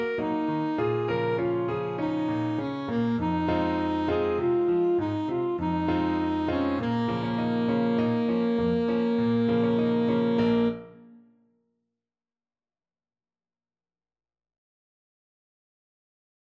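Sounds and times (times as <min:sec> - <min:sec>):
alto saxophone: 0:00.0 - 0:11.2.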